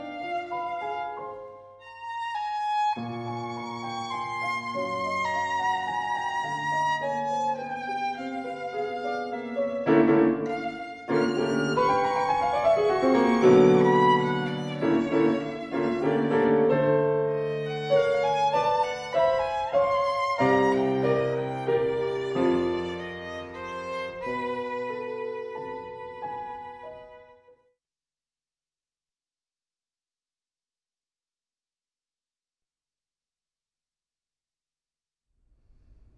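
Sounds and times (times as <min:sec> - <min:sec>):
violin and piano sonata movement: 0:00.0 - 0:27.7.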